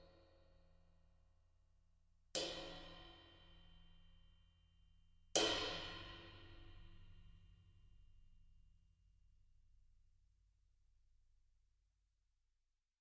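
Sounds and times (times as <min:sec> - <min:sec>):
22 ride cymbal played with birch rutes: 0:02.4 - 0:08.5.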